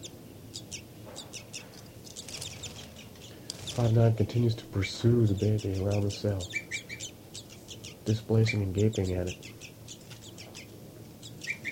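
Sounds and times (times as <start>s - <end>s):
bird flight call series in a cell: 0.0s - 11.7s
low rumble: 0.0s - 11.7s
speech: 3.8s - 6.6s, 8.0s - 9.5s.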